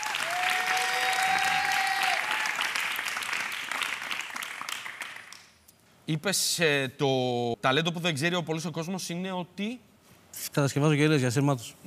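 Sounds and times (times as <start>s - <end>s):
applause: 0.0s - 5.6s
speech: 6.1s - 9.9s, 10.5s - 11.8s.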